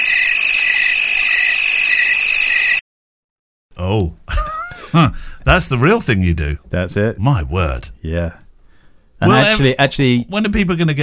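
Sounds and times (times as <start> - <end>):
crickets chirping sound effect: 0.0 - 2.8
laughter: 4.3 - 5.1
speech: 4.9 - 8.4, 9.2 - 11.0.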